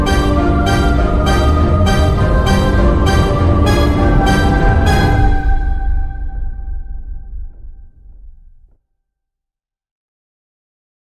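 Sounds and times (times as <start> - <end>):
villain entry background music: 0.0 - 7.3.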